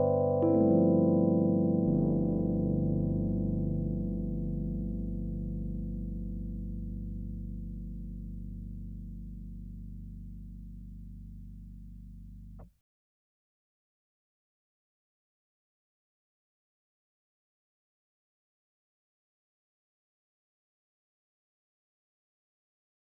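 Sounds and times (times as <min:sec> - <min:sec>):
Rhodes electric piano without EQ: 0:00.0 - 0:12.6.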